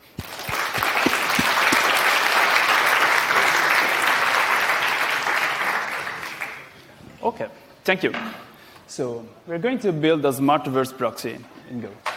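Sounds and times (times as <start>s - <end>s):
audience applause: 0.0s - 6.8s
speech: 7.4s - 12.1s.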